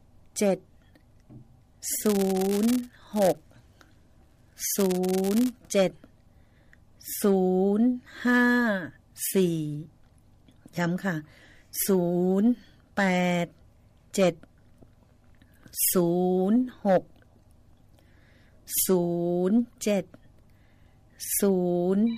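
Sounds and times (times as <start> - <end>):
speech: 0.4 - 0.7, 1.3 - 3.5, 4.6 - 6.1, 7.0 - 10.0, 10.7 - 14.5, 15.8 - 17.1, 18.7 - 20.2, 21.2 - 22.1
telephone ringing for an incoming call: 2.0 - 2.9, 4.7 - 5.6.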